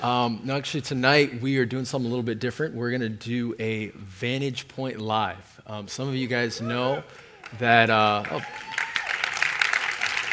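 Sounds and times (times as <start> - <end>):
speech: 0.0 - 8.7
sparse audience clapping: 7.0 - 10.3.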